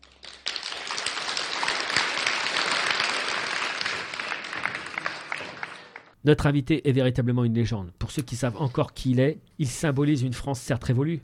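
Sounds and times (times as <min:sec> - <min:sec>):
audience applause: 0:00.0 - 0:06.2
speech: 0:06.2 - 0:11.2.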